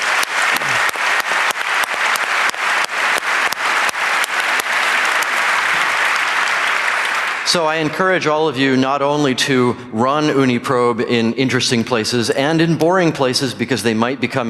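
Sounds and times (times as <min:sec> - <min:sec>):
audience applause: 0:00.0 - 0:07.9
speech: 0:07.5 - 0:14.4.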